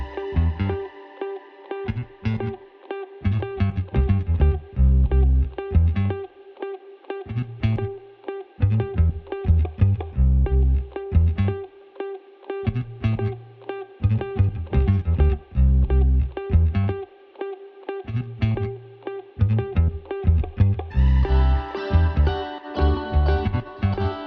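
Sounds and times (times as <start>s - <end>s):
bass: 0.0s - 0.9s, 1.9s - 2.6s, 3.2s - 6.3s, 7.3s - 8.0s, 8.6s - 11.7s, 12.7s - 17.1s, 18.0s - 24.2s
guitar: 0.0s - 24.2s.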